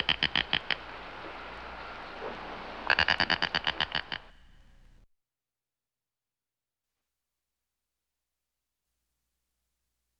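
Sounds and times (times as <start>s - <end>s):
cranes in the Florida Glades: 0.0s - 5.0s
herons in the Florida Glades: 0.0s - 5.0s
kites in the Florida Glades: 0.0s - 5.0s.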